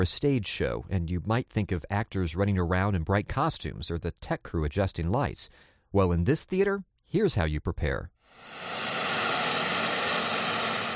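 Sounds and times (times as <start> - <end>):
speech: 0.0 - 8.8
white noise for speaker calibration: 8.4 - 10.9.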